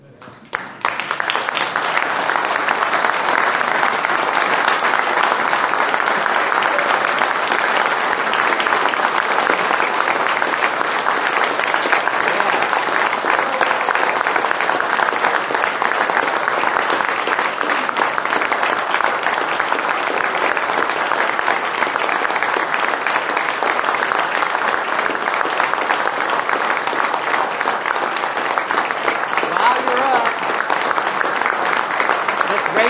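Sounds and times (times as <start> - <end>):
audience applause: 0.0 - 32.8.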